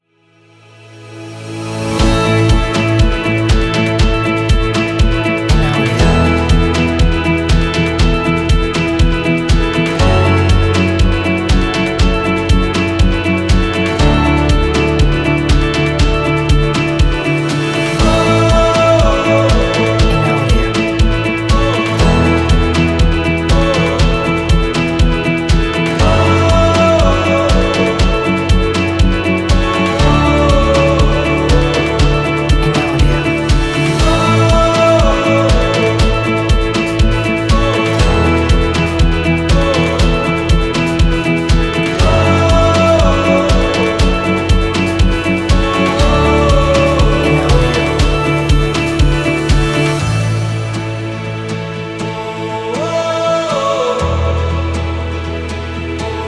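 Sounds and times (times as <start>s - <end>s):
uplifting action pop music: 1.3s - 56.2s.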